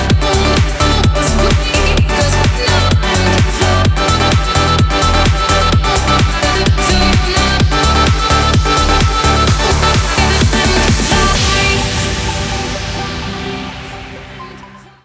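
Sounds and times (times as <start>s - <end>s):
EDM chorus: 0.0s - 15.0s.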